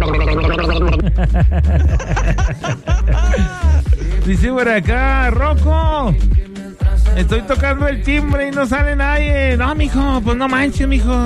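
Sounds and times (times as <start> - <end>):
gargling: 0.0 - 1.1
laughter: 0.6 - 4.6
speech: 1.2 - 2.9, 4.3 - 6.4, 7.2 - 11.2.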